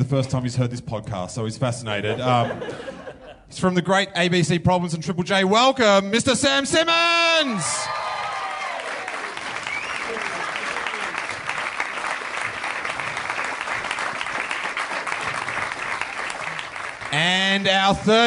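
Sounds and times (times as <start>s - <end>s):
speech: 0.0s - 8.0s, 17.2s - 18.2s
laughter: 2.0s - 3.5s
whoops: 7.4s - 10.4s
audience clapping: 7.4s - 18.2s.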